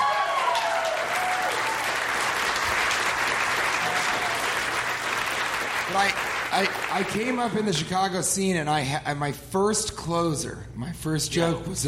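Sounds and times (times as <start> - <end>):
audience applause: 0.0 - 7.8
speech: 5.9 - 11.8.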